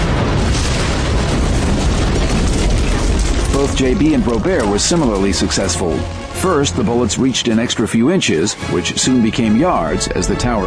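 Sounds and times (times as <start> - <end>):
grenade explosion: 0.0 - 7.7
speech: 3.7 - 10.6.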